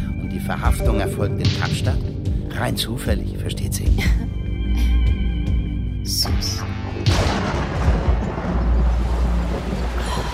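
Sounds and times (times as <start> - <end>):
speech: 0.4 - 5.2, 6.0 - 7.7
thunder rumbling in a dry thunderstorm: 7.1 - 10.3.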